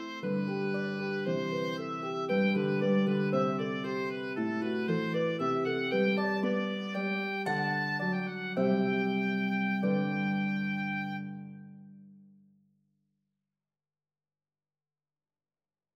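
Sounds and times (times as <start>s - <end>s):
oboe in duet with harp: 0.0s - 11.8s
harp in duet with oboe: 0.0s - 12.0s.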